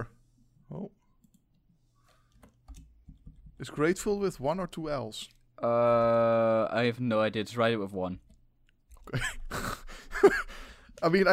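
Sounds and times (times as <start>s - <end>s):
computer keyboard typing an email: 2.3s - 3.6s
speech: 3.6s - 8.3s, 9.1s - 9.4s, 10.2s - 11.3s.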